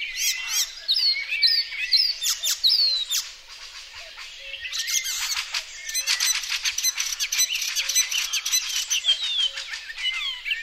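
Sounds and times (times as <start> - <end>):
Icterine warbler song: 0.0 - 10.6.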